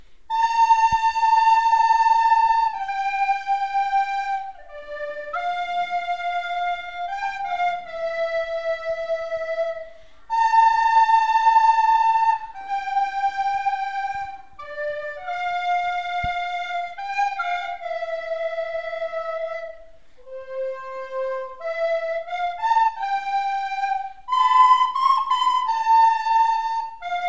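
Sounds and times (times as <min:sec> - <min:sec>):
flutes playing a flamenco rumba: 0:00.0 - 0:27.2.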